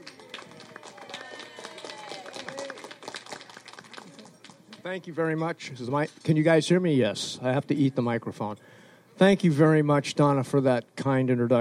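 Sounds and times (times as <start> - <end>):
audience round of applause: 0.0 - 4.9
speech: 4.8 - 11.6.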